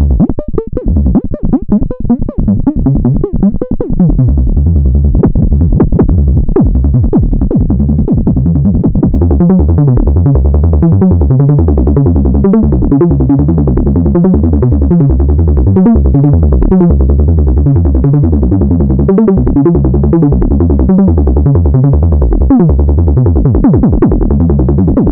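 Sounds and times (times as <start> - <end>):
MicroBrute synthesizer fun sound with mod wheel: 0.2 - 25.1.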